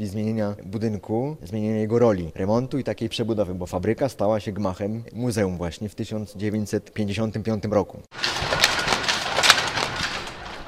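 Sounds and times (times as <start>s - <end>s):
speech: 0.0s - 8.7s
old weaving looms running: 8.1s - 10.6s.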